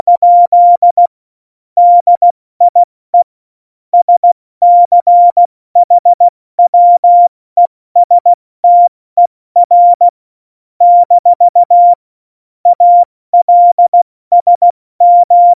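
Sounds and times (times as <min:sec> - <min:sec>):
CW Morse code beeps: 0:00.0 - 0:01.1, 0:01.8 - 0:02.9, 0:04.0 - 0:07.3, 0:08.0 - 0:08.9, 0:09.6 - 0:10.1, 0:10.8 - 0:12.0, 0:12.7 - 0:15.5.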